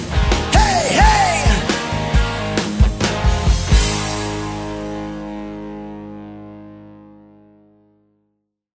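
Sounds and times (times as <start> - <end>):
cover band playing: 0.3 - 4.1.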